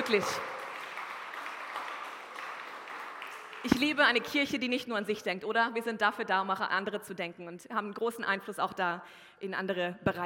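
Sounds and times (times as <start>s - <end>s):
audience applause: 0.0s - 4.4s
speech: 0.1s - 0.6s, 3.6s - 10.2s.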